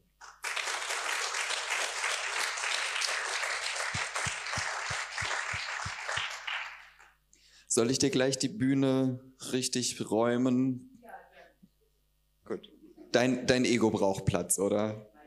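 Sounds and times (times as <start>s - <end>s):
audience applause: 0.2s - 7.2s
speech: 7.7s - 10.9s, 12.5s - 15.1s.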